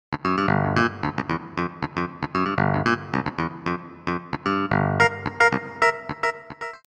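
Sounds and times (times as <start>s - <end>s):
harpsichord: 0.4s - 6.9s.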